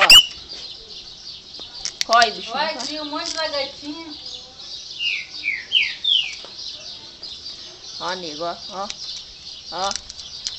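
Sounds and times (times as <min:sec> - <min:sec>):
Chopi Blackbird singing whistled notes: 0:00.0 - 0:00.4, 0:05.0 - 0:06.4
speech: 0:02.1 - 0:04.3, 0:08.0 - 0:09.1, 0:09.7 - 0:10.0.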